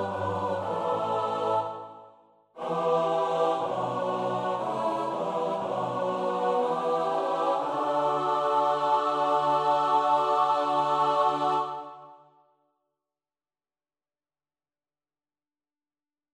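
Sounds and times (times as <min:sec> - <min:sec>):
SATB choir singing a psalm: 0:00.0 - 0:12.4.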